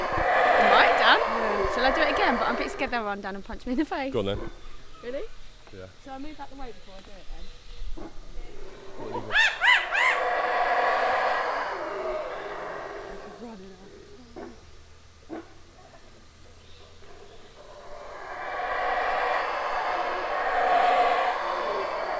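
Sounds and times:
howler monkey roaring in a jungle: 0.0s - 3.2s, 8.0s - 14.7s, 16.8s - 22.1s.

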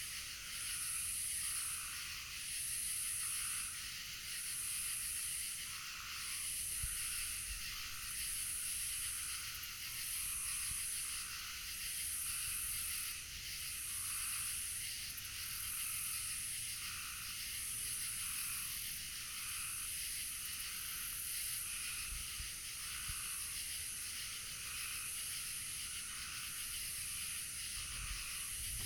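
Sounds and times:
frogs calling at night among lily pads: 0.2s - 28.8s.

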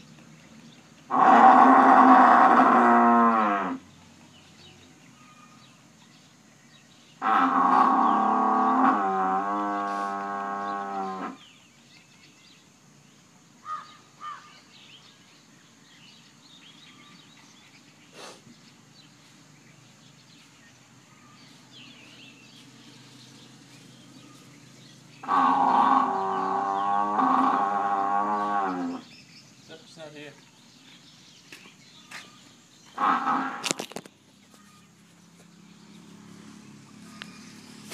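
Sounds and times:
buffalo low moo: 1.1s - 3.8s, 7.2s - 11.4s, 25.2s - 29.1s, 33.0s - 33.8s.

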